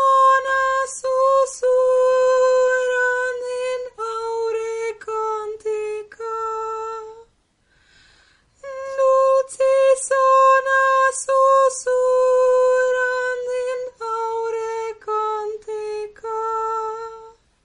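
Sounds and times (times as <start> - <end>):
soprano singing: 0.0 - 7.3, 8.6 - 17.4.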